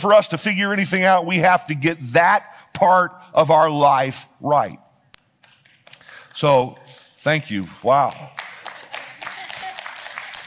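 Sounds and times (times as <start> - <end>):
speech: 0.0 - 4.8, 6.4 - 8.4
a few people clapping: 5.3 - 7.2, 7.9 - 10.4.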